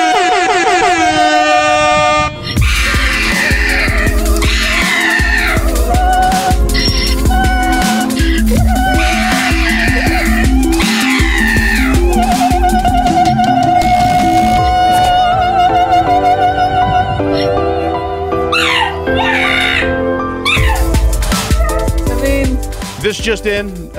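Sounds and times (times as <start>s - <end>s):
operatic singing: 0.1s - 23.9s
pug and donkey cries and brays: 2.5s - 15.5s, 18.5s - 22.0s
thumping beat: 2.6s - 16.3s, 20.6s - 23.9s
speech: 23.4s - 23.9s.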